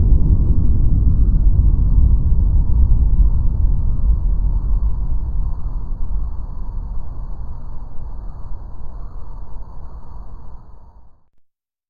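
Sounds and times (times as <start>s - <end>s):
earthquake in the Salish Sea: 0.0s - 8.8s.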